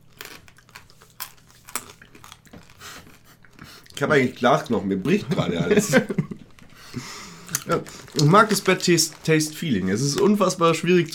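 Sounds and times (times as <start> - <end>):
crunching salty crispy snacks: 0.0 - 4.0, 7.5 - 11.1
speech: 4.0 - 6.2, 7.7 - 11.1
laughter: 5.1 - 7.0.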